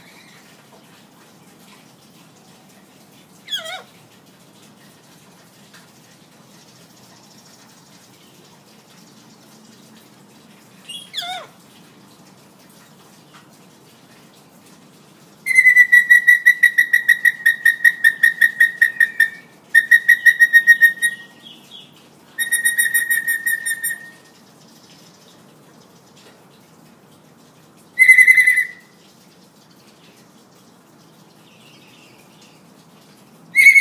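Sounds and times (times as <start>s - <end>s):
hill myna buzzy whistled calls: 15.5s - 21.4s, 22.4s - 24.3s, 28.0s - 28.9s, 33.6s - 33.7s.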